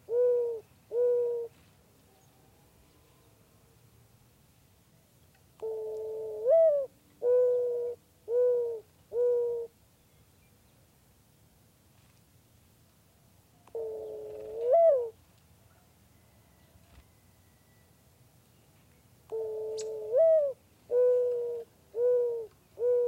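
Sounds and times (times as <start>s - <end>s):
Great Horned Owl calling: 0.0s - 1.5s, 5.6s - 9.7s, 13.7s - 15.2s, 19.3s - 23.0s
Mourning Dove calling: 0.0s - 1.6s, 5.6s - 9.7s, 13.7s - 15.2s, 19.3s - 23.0s.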